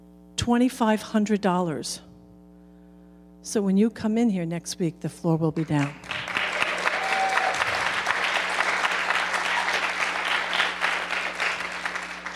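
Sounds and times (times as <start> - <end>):
speech: 0.4 - 2.1, 3.4 - 6.1
audience applause: 6.0 - 12.3.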